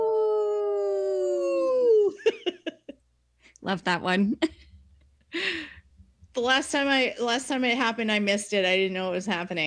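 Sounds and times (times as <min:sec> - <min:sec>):
human voice imitating a wolf howl: 0:00.0 - 0:02.2
speech: 0:03.6 - 0:04.6, 0:06.4 - 0:09.6.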